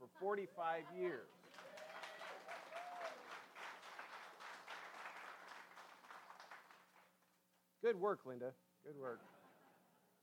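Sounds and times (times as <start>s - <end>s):
speech: 0.1s - 1.4s, 7.8s - 9.4s
audience applauding: 1.4s - 7.3s.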